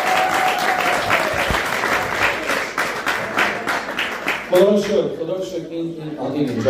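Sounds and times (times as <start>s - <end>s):
church congregation applause during a service: 0.0s - 4.9s
speech: 4.5s - 6.6s.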